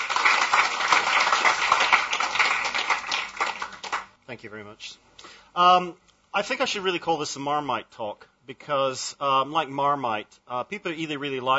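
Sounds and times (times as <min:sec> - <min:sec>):
audience applause welcoming a speaker to a book talk: 0:00.0 - 0:04.1
speech: 0:04.3 - 0:11.5.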